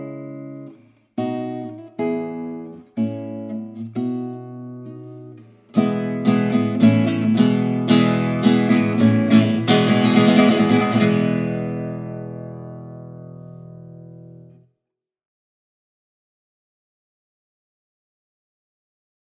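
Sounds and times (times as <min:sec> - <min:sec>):
instrumental music: 0:00.0 - 0:14.7.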